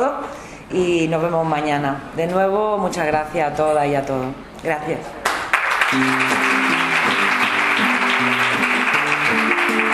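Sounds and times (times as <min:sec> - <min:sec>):
speech: 0:00.0 - 0:05.2, 0:05.9 - 0:06.5
audience clapping along to a closing song at a book presentation in Zaragoza: 0:05.2 - 0:09.9.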